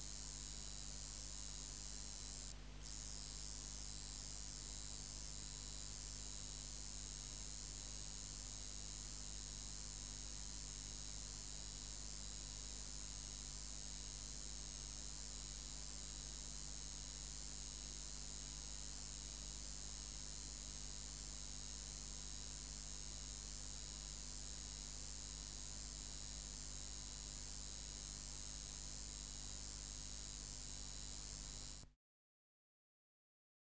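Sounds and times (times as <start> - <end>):
bush-cricket buzzing song: 0.0 - 31.8.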